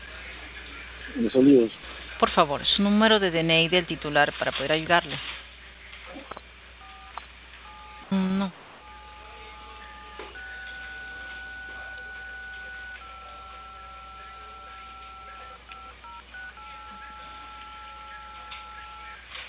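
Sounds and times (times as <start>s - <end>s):
speech: 1.2s - 5.4s
telephone keypad tones over a hissy phone line: 6.8s - 8.2s, 8.8s - 19.3s
phone line hiss: 6.8s - 19.4s.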